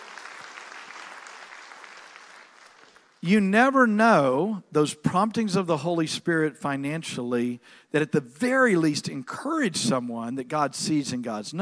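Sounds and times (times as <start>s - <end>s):
audience applause: 0.0s - 3.2s
speech: 3.2s - 11.6s.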